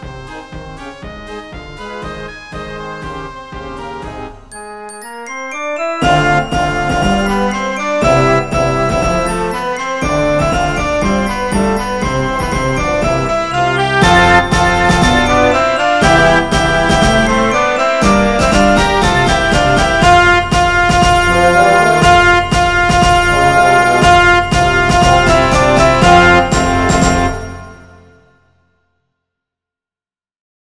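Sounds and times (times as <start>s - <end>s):
orchestra playing a joyful processional: 5.5s - 28.2s.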